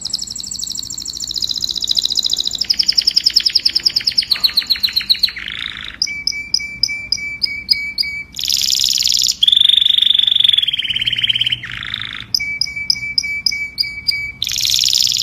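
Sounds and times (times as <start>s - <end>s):
domestic canary singing: 0.0s - 15.2s.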